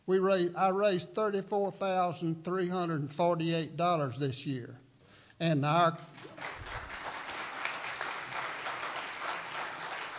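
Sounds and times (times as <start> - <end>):
speech: 0.1 - 4.8, 5.4 - 6.6
audience applause at a Make-A-Wish charity hike celebration: 6.2 - 10.1.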